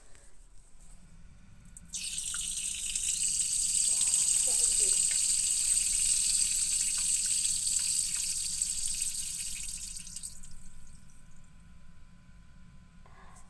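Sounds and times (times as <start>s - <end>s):
urinating in an office toilet after lunch: 0.1s - 13.4s.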